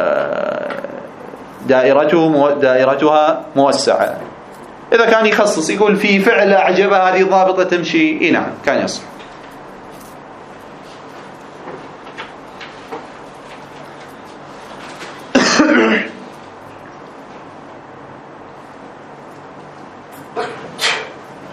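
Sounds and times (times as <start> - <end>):
speech: 1.7 - 9.1
sneeze: 15.4 - 16.2, 20.4 - 21.2.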